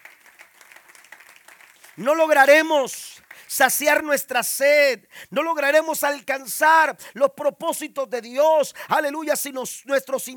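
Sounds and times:
audience applause: 0:00.0 - 0:03.8
speech: 0:02.0 - 0:10.3.

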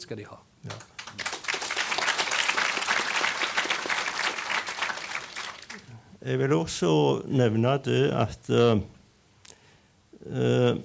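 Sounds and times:
speech: 0:00.1 - 0:00.9, 0:06.2 - 0:09.0, 0:10.2 - 0:10.8
audience applause: 0:00.7 - 0:05.9.

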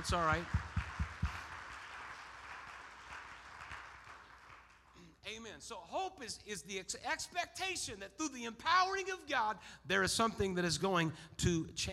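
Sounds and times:
speech: 0:00.0 - 0:00.6, 0:05.6 - 0:11.9
audience clapping hands: 0:00.0 - 0:05.1.

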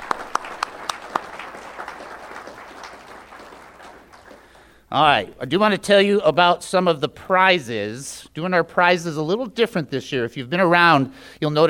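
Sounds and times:
audience applause: 0:00.0 - 0:04.8
speech: 0:04.9 - 0:11.6.

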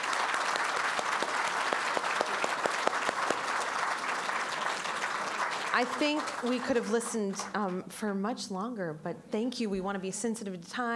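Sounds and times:
audience applause: 0:00.0 - 0:06.9
speech: 0:05.8 - 0:10.9.

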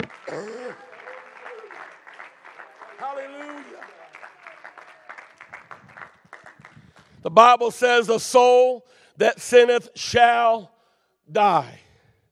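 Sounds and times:
speech: 0:00.0 - 0:00.9, 0:03.0 - 0:04.0, 0:07.2 - 0:10.7, 0:11.3 - 0:11.8
audience clapping hands: 0:00.0 - 0:07.3.

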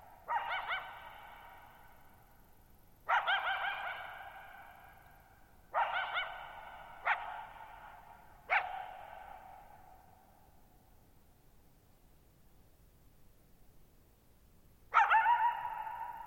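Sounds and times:
coyote barking and yipping: 0:00.2 - 0:01.8, 0:03.1 - 0:05.0, 0:05.7 - 0:10.0, 0:14.9 - 0:16.2.

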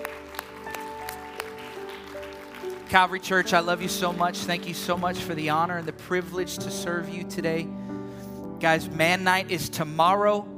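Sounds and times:
audience clapping hands in steady unison rhythm: 0:00.0 - 0:06.4
sustained keyboard chords: 0:00.0 - 0:10.5
speech: 0:02.9 - 0:07.8, 0:08.6 - 0:10.5.

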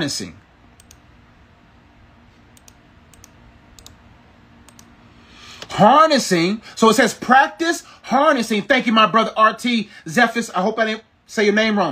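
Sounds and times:
speech: 0:00.0 - 0:00.4, 0:05.8 - 0:11.9
typing notes on a keyboard: 0:00.8 - 0:01.0, 0:02.6 - 0:04.0, 0:04.6 - 0:04.9.

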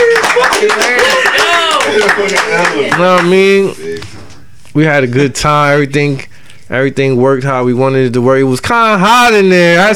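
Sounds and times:
voices whooping and cheering: 0:00.0 - 0:02.0
small group clapping: 0:00.0 - 0:03.6
speech: 0:02.4 - 0:04.1, 0:04.8 - 0:09.9.

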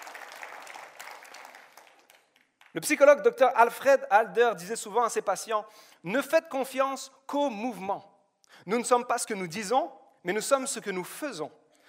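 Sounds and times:
audience applauding: 0:00.0 - 0:02.8
speech: 0:02.8 - 0:11.6.

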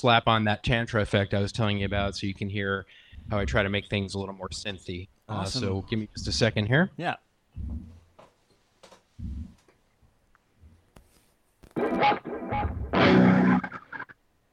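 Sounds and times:
speech: 0:00.0 - 0:07.9
clean untreated electric guitar plucking and strumming chords: 0:11.8 - 0:14.2.

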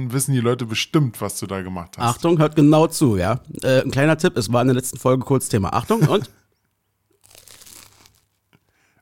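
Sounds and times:
speech: 0:00.0 - 0:06.4
laughter: 0:05.8 - 0:06.3
crunchy bite into crispy food: 0:07.2 - 0:08.4.

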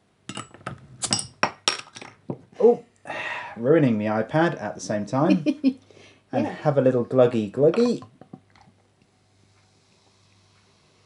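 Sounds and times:
bottle of Siren Craft Brew Liquid Mistress red IPA being opened: 0:00.3 - 0:02.2, 0:07.7 - 0:08.1
speech: 0:02.6 - 0:02.9, 0:03.6 - 0:08.1.

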